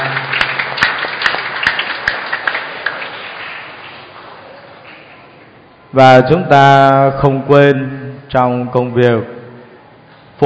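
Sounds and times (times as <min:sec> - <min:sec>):
audience applauding: 0:00.0 - 0:04.4
speech: 0:06.0 - 0:09.4.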